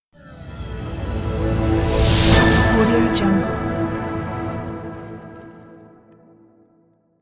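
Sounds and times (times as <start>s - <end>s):
bright modern logo jingle: 0.2s - 5.3s.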